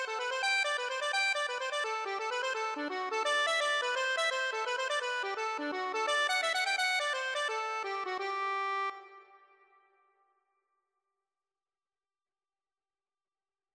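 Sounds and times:
accordion playing a hornpipe: 0.0 - 9.4.

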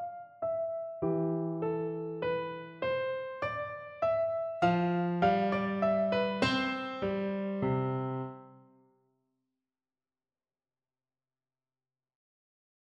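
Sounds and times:
piano minuet in C: 0.0 - 8.7.

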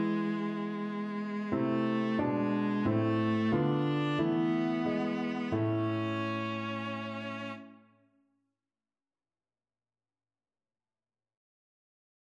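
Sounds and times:
viola: 0.0 - 7.8.

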